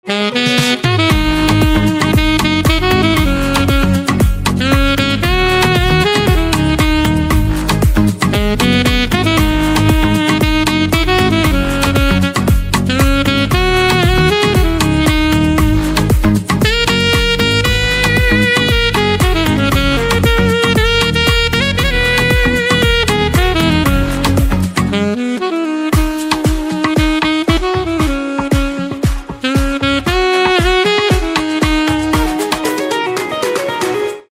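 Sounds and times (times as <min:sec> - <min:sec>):
saxophone: 0:00.0 - 0:34.3.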